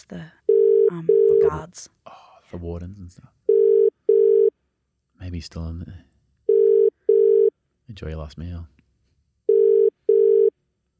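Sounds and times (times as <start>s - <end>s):
speech: 0.0s - 3.4s, 5.2s - 6.1s, 7.9s - 8.8s
telephone ringing: 0.5s - 1.6s, 3.5s - 4.5s, 6.5s - 7.5s, 9.5s - 10.5s.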